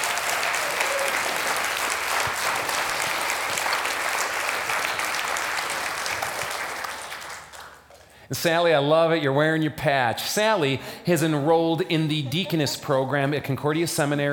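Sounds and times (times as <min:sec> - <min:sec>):
audience applause welcoming a 73-year-old seminary student to the stage: 0:00.0 - 0:08.1
speech: 0:08.3 - 0:14.3.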